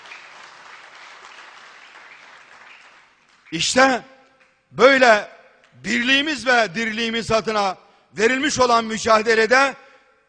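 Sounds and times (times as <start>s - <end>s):
audience applause: 0.0s - 3.5s
speech: 3.5s - 4.1s, 4.7s - 10.2s.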